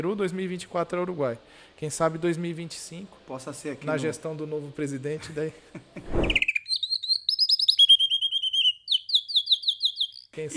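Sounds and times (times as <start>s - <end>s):
speech: 0.0s - 6.3s, 10.4s - 10.5s
canary singing: 6.2s - 10.4s.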